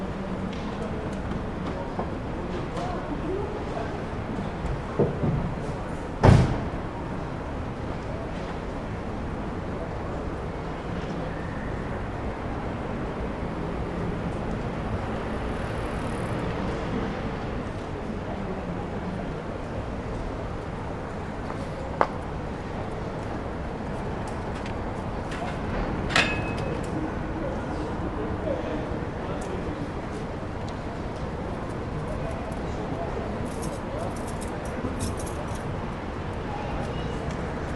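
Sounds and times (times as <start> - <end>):
daytime side street ambience in Vienna Austria: 0.0 - 37.7.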